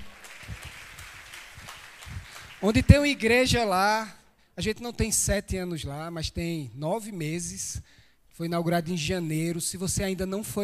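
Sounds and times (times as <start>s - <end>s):
audience applause: 0.0s - 3.2s
speech: 2.6s - 10.6s.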